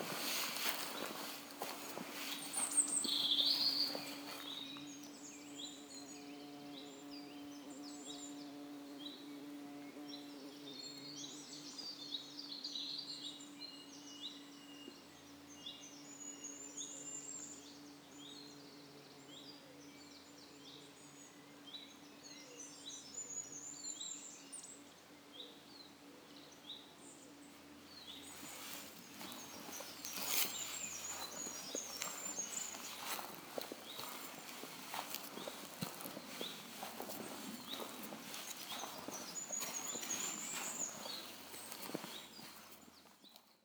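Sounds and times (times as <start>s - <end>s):
peaceful forest ambience in May: 0.0s - 43.6s.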